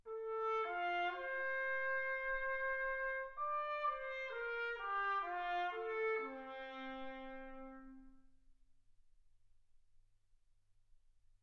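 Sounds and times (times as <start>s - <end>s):
trumpet: 0.0s - 8.3s.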